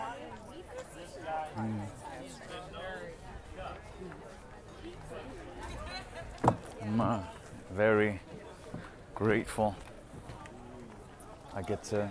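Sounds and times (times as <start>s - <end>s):
crowd chatter at the Santa Cruz Farmers Market: 0.0s - 12.0s
speech: 9.2s - 9.9s, 11.6s - 12.0s.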